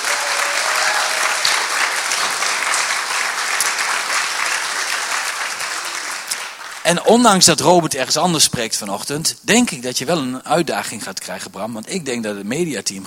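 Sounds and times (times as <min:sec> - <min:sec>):
crowd applause: 0:00.0 - 0:07.1
speech: 0:06.9 - 0:13.0.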